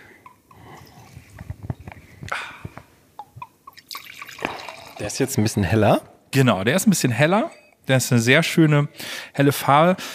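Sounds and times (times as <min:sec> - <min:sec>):
wine pouring into a glass: 0:03.2 - 0:05.7
speech: 0:05.0 - 0:10.1.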